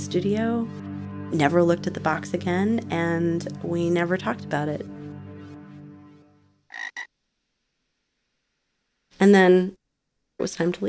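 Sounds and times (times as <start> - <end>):
low droning harmonic tone: 0.0 - 6.4
speech: 0.1 - 4.9, 9.2 - 9.8, 10.4 - 10.8
spring peeper frogs peeping: 6.7 - 7.1.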